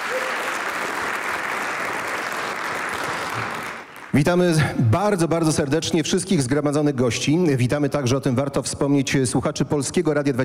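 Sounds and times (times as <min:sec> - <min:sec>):
audience applause: 0:00.0 - 0:04.4
speech: 0:04.1 - 0:10.4.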